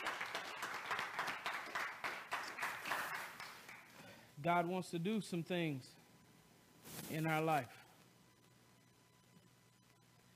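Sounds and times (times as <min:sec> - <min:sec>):
audience applause: 0:00.0 - 0:03.9
speech: 0:04.4 - 0:06.0, 0:07.1 - 0:07.8.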